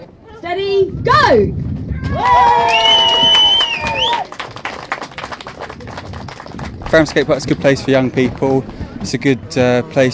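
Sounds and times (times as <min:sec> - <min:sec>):
speech: 0:00.4 - 0:03.0, 0:06.9 - 0:10.1
crowd cheering at skate park opening: 0:02.0 - 0:07.4.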